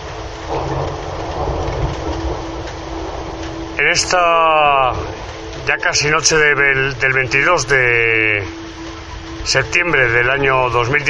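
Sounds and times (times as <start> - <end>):
thunder: 0.0 - 5.9
heavy downpour: 0.0 - 11.0
speech: 3.8 - 8.6, 9.4 - 11.0.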